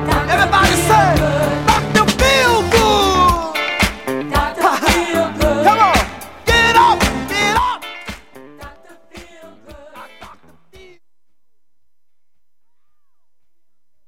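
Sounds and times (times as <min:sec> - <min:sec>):
funk music: 0:00.0 - 0:11.0.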